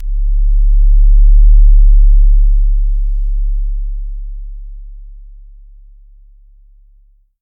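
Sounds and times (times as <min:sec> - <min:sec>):
bass effect: 0:00.0 - 0:05.4.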